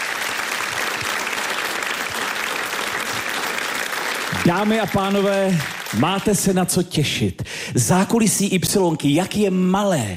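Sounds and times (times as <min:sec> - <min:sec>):
packed studio audience applause: 0:00.0 - 0:06.6
speech: 0:04.4 - 0:10.1.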